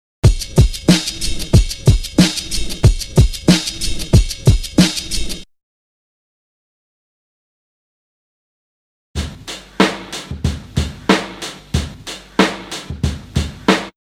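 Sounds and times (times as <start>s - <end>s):
drum loop: 0.3s - 3.5s, 9.2s - 14.0s.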